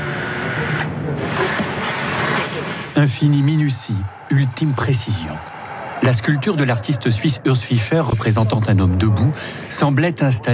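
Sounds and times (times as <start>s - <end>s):
power drills whirring: 0.0s - 3.0s
vacuum cleaners running: 0.0s - 3.0s
speech: 3.0s - 10.5s.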